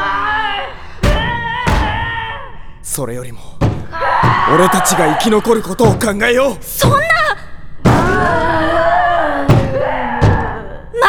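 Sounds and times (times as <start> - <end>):
lion battering against a door: 1.0 - 2.5, 3.6 - 11.0
speech: 3.0 - 7.2.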